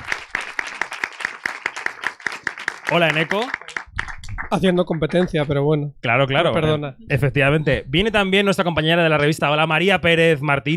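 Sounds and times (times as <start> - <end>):
audience hand claps: 0.0 - 5.5
speech: 2.9 - 3.8, 4.5 - 10.7.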